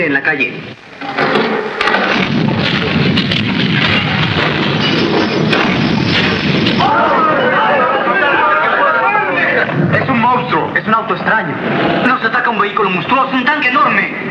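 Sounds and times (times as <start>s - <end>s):
speech: 0.0s - 3.3s, 10.4s - 14.3s
rumbling tremor of a collapsing house: 1.0s - 8.3s, 9.4s - 12.4s
laughter: 6.8s - 9.8s.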